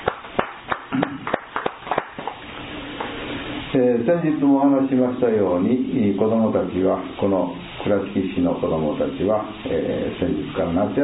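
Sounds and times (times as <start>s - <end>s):
scattered handclaps celebrating a boy's 10th birthday: 0.0s - 2.4s
low hum: 0.0s - 11.0s
speech: 3.8s - 11.0s.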